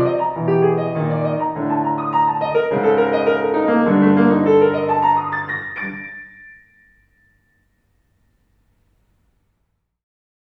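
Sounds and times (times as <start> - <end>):
prelude music poco con moto: 0.0 - 7.4.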